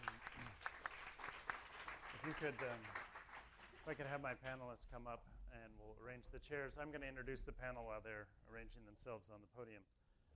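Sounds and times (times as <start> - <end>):
audience applause: 0.0 - 4.1
speech: 2.2 - 3.0, 3.9 - 10.0.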